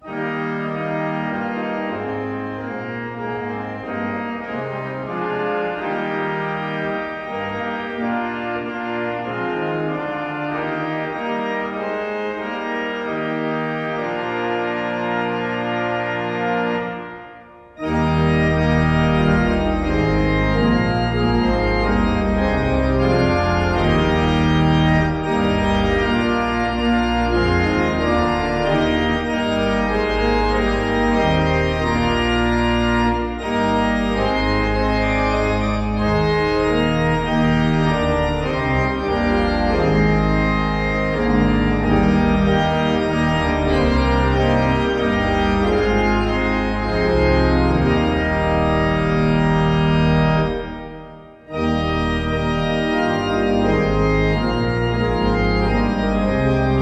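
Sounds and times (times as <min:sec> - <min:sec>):
organ playing a hymn: 0:00.0 - 0:56.8.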